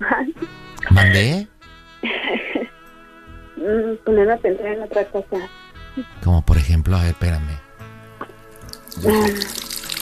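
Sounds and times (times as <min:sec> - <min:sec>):
speech: 0:00.0 - 0:01.5, 0:03.7 - 0:07.6, 0:09.0 - 0:09.6
water running from a faucet: 0:08.6 - 0:09.9.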